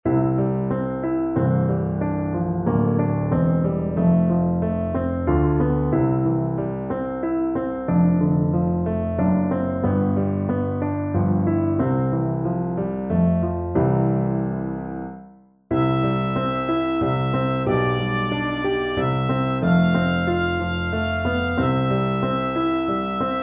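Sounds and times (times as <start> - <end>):
piano playback accompaniment: 0.0 - 23.4
oboe solo: 15.7 - 23.4.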